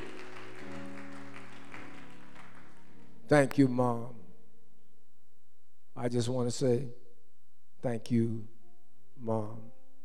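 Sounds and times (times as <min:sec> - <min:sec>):
audience double clapping: 0:00.0 - 0:03.6
speech: 0:03.3 - 0:04.2, 0:06.0 - 0:07.0, 0:07.8 - 0:08.5, 0:09.2 - 0:09.7.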